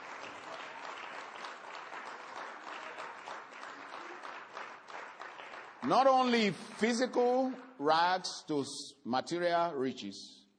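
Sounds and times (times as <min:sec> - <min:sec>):
audience clapping: 0:00.0 - 0:07.5
speech: 0:05.8 - 0:10.4.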